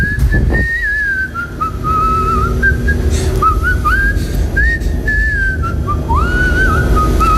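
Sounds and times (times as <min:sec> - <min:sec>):
low rumble: 0:00.0 - 0:07.3
person whistling a tune: 0:00.0 - 0:07.3.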